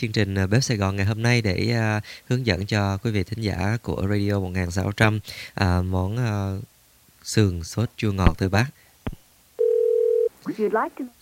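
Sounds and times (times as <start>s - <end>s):
speech: 0.0s - 9.2s, 10.4s - 11.2s
telephone dial tone after a caller's line dropped: 9.6s - 10.3s.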